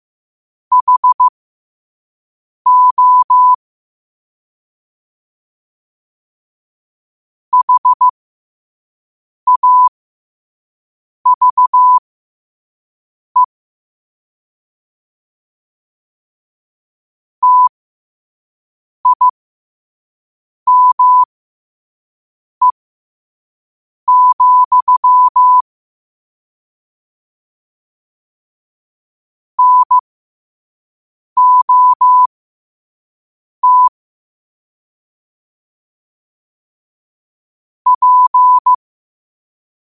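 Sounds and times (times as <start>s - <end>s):
morse code at 5 wpm: 0.7s - 1.3s, 2.7s - 3.6s, 7.6s - 8.1s, 9.5s - 9.9s, 11.3s - 12.0s, 17.4s - 17.7s, 19.0s - 19.4s, 20.7s - 21.3s, 24.1s - 25.6s, 29.6s - 30.0s, 31.4s - 32.3s, 33.6s - 34.0s, 37.9s - 38.8s.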